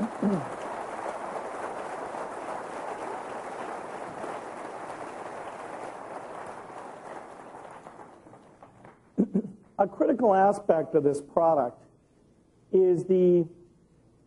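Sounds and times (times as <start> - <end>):
audience applause for the Windows XP team: 0.0 - 9.0
speech: 0.3 - 0.6, 9.8 - 11.8, 12.7 - 13.6.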